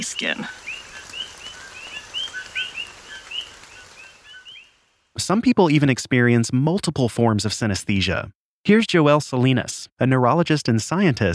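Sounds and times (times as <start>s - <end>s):
speech: 0.0s - 0.7s, 5.2s - 11.3s
Puerto Rican coqui frogs calling: 0.0s - 5.0s
soft steady hiss: 0.0s - 5.4s.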